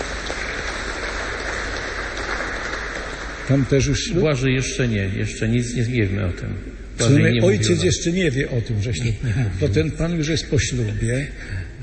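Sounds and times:
audience applause: 0.0s - 4.4s
speech: 3.5s - 11.8s.

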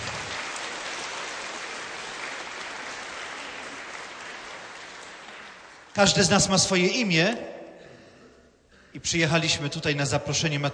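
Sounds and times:
audience applause: 0.0s - 6.0s
speech: 6.0s - 7.4s, 9.0s - 10.7s.

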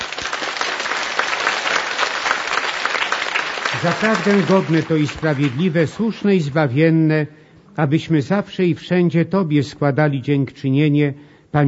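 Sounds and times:
audience applauding: 0.0s - 6.0s
speech: 3.8s - 11.6s.

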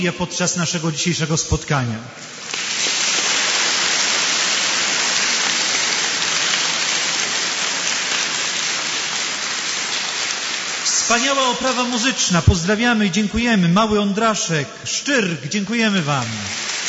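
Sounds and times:
speech: 0.0s - 2.7s, 11.1s - 16.6s
large crowd applause: 2.4s - 11.8s, 16.2s - 16.8s.

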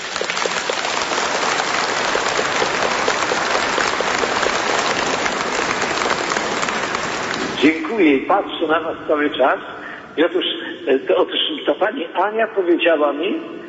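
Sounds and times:
audience applause: 0.0s - 7.9s
speech: 7.6s - 13.6s.

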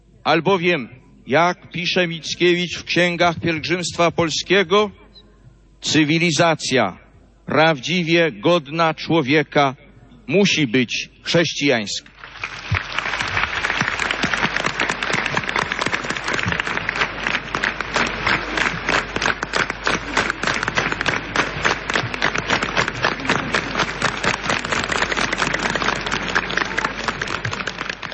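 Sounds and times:
speech: 0.2s - 5.0s, 5.8s - 12.7s
audience applause: 12.0s - 28.1s.

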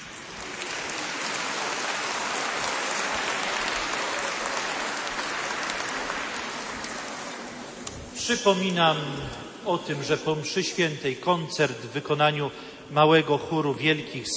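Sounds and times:
applause: 0.0s - 8.1s
speech: 8.3s - 14.3s.

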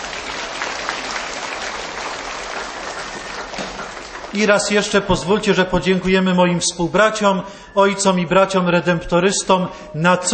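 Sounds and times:
crowd applauding: 0.0s - 6.2s
speech: 4.4s - 10.3s.

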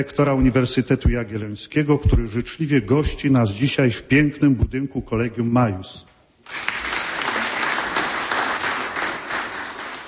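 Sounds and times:
speech: 0.0s - 6.6s
audience applause: 6.4s - 10.0s.

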